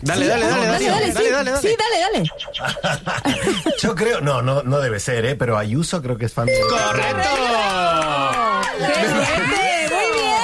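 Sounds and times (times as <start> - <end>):
speech: 0.0 - 9.6
laughter: 2.5 - 4.1
applause and cheering: 6.6 - 10.4.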